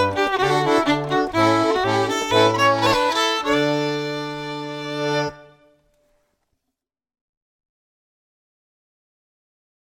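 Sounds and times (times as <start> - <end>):
bourree dance music: 0.0 - 5.5.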